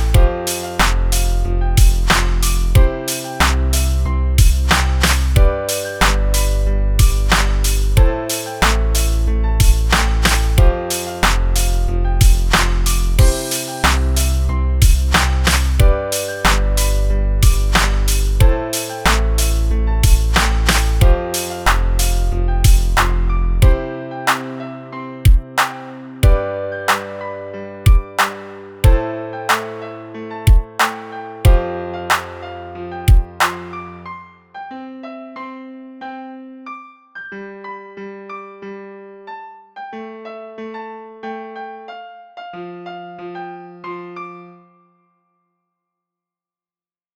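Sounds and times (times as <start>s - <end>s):
beat: 0.0s - 24.6s, 25.3s - 27.2s, 27.9s - 29.7s, 30.5s - 32.5s, 33.1s - 33.9s
piano: 0.0s - 45.3s.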